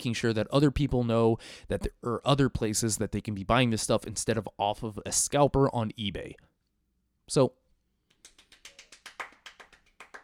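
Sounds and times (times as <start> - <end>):
speech: 0.0 - 6.5, 7.3 - 7.6
faint hand clapping: 8.1 - 10.2.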